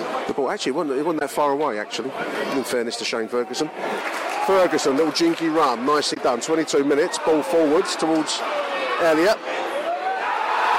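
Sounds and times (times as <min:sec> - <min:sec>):
speech: 0:00.3 - 0:09.6
football crowd howling at a Reading match: 0:03.6 - 0:10.7.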